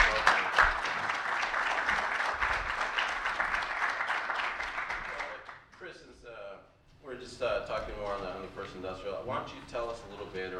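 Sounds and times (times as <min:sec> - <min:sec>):
crowd applauding: 0:00.0 - 0:05.7
speech: 0:08.0 - 0:10.5.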